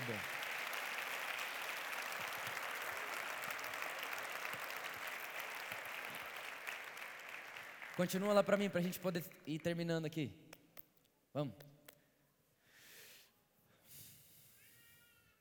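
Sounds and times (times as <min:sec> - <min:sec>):
crowd applause: 0:00.0 - 0:08.8
speech: 0:00.1 - 0:00.4, 0:08.0 - 0:10.4, 0:11.4 - 0:11.7.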